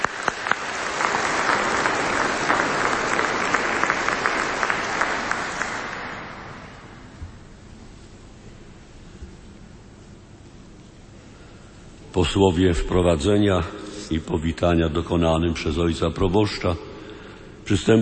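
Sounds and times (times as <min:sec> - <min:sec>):
audience applause: 0:00.0 - 0:07.2
quiet hiss: 0:00.1 - 0:18.0
speech: 0:12.2 - 0:17.0, 0:17.7 - 0:18.0.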